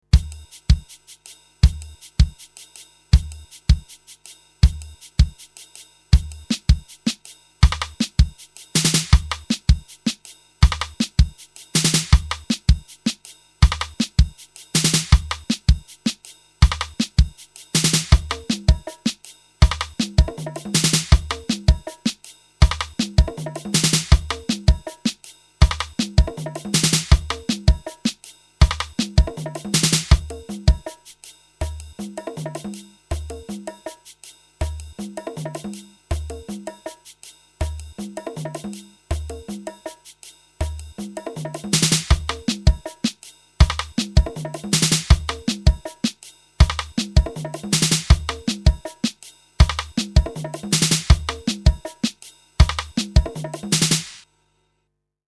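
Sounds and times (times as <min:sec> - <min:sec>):
Drumstar 80 uptempo drum beat: 0:00.0 - 0:54.2.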